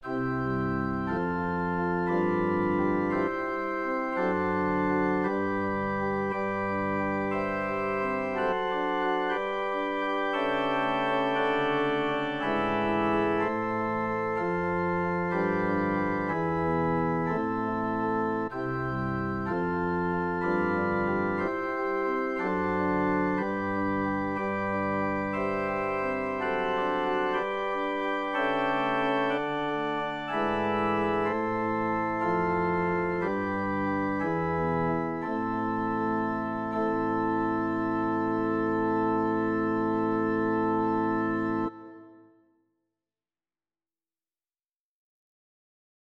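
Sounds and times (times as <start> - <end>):
organ concerto: 0.0 - 42.3.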